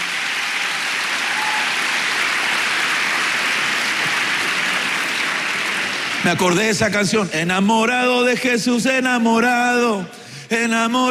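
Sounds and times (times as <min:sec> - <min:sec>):
audience clapping: 0:00.0 - 0:07.1
speech: 0:06.2 - 0:11.0.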